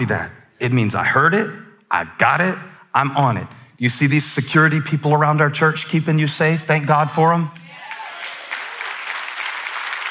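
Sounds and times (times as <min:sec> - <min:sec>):
speech: 0:00.0 - 0:07.6
audience clapping: 0:07.6 - 0:10.1.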